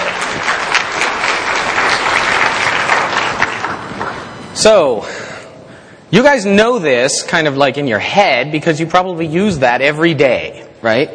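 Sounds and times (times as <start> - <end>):
audience applause: 0.0 - 4.3
speech: 4.6 - 5.2, 6.1 - 11.1.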